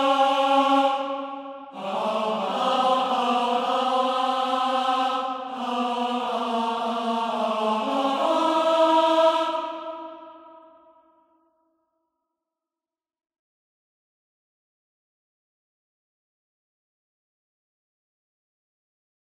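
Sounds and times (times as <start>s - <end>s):
tenor singing: 0.0s - 10.6s.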